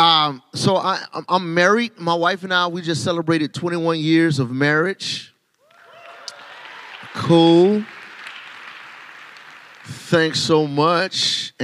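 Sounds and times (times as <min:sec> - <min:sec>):
speech: 0:00.3 - 0:05.3, 0:07.2 - 0:08.0, 0:09.9 - 0:11.6
audience applause: 0:05.7 - 0:11.0.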